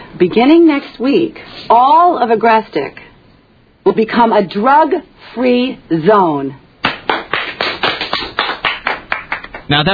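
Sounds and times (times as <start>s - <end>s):
speech: 0.2s - 3.0s, 3.8s - 6.6s, 9.7s - 9.9s
school principal clapping alone at a grammar school announcement: 6.8s - 9.7s.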